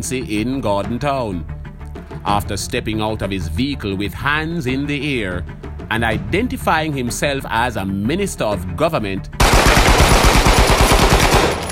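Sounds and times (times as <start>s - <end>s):
speech: 0.0s - 1.6s, 2.2s - 9.8s
rapid burst of rifle gunfire: 9.4s - 11.7s.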